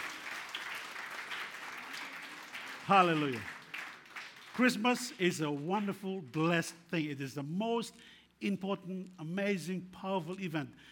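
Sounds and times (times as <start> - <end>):
church congregation clapping during a Christmas sermon: 0.0 - 7.0
speech: 2.9 - 3.5, 4.6 - 10.9.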